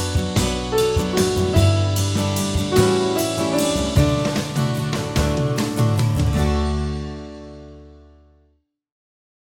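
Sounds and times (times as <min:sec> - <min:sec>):
backing track: 0:00.0 - 0:07.6.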